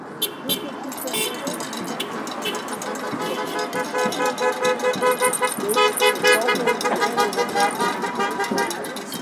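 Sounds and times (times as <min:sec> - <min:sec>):
horns: 0:00.2 - 0:09.1.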